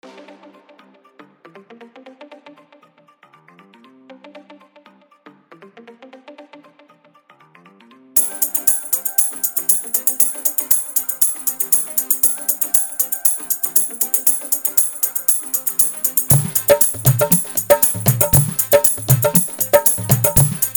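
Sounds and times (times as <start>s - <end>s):
hard dholki bass mix: 8.2s - 20.7s.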